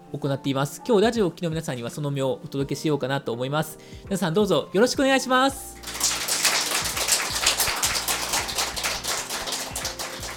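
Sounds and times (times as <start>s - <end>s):
speech: 0.1s - 6.0s
crowd applauding: 5.8s - 10.3s.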